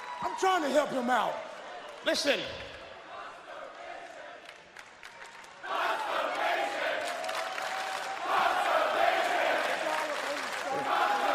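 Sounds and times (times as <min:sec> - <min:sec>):
speech: 0:00.3 - 0:02.8
large crowd shouting and roaring: 0:05.6 - 0:11.3.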